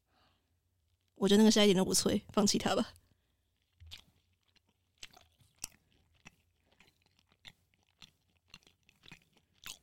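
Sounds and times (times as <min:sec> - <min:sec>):
speech: 0:01.2 - 0:03.0
chewing fried chicken: 0:02.9 - 0:09.8.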